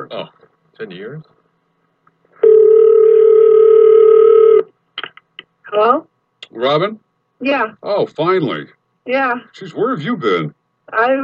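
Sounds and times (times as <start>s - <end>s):
speech: 0.0s - 1.4s, 5.7s - 11.2s
ringback tone of an outgoing phone call: 2.4s - 4.7s.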